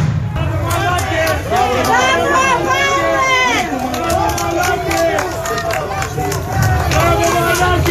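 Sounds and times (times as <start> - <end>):
crowd applauding as police pass: 0.4 - 7.8.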